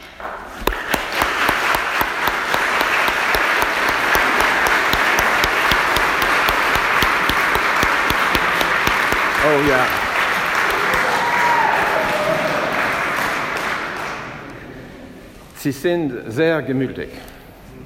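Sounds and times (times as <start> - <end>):
round of applause: 0.7 - 14.5
speech: 9.6 - 10.0, 15.6 - 17.3.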